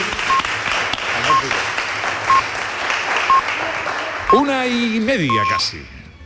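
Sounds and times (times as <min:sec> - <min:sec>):
audience applause: 0:00.0 - 0:04.6
speech: 0:04.3 - 0:06.0.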